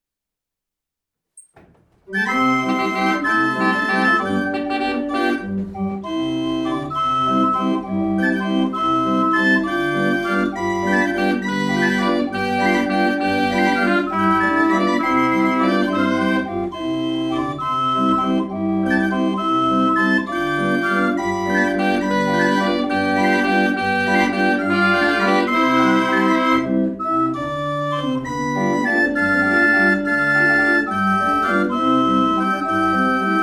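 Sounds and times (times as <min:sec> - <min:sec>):
melody on a sample cylinder recording: 0:01.6 - 0:33.4.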